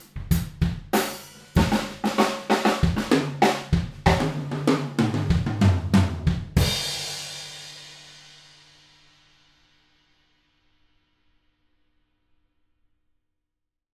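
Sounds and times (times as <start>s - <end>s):
drum: 0.0s - 8.3s.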